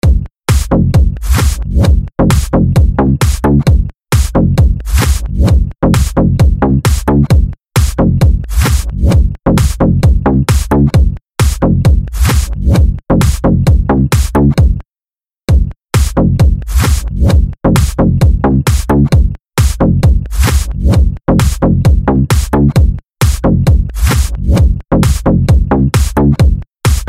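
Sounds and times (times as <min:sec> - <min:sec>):
bass beat: 0:00.0 - 0:14.8, 0:15.5 - 0:27.0.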